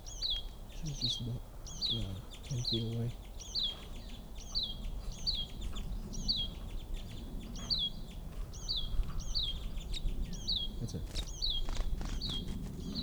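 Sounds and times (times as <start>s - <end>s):
bird calls: 0.0s - 13.0s
speech: 0.8s - 3.2s, 10.9s - 11.3s.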